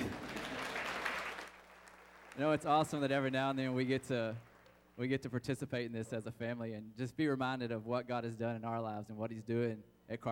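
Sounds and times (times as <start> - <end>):
audience applauding: 0.0 - 4.8
speech: 2.4 - 10.3.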